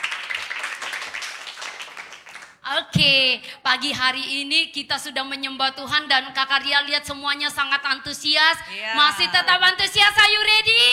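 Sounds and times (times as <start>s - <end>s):
church congregation applauding for Jesus: 0.0s - 2.6s
speech: 2.7s - 10.9s.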